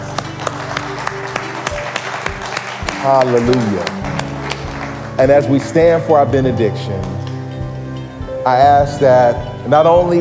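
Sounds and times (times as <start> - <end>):
audience applauding: 0.0 - 5.9
speech: 3.0 - 4.0, 5.2 - 7.2, 8.4 - 10.2.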